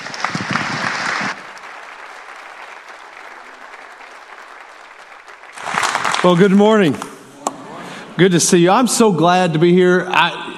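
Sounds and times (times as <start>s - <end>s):
church congregation applauding to welcome a speaker: 0.0s - 7.0s
speech: 6.2s - 7.0s, 8.2s - 10.5s.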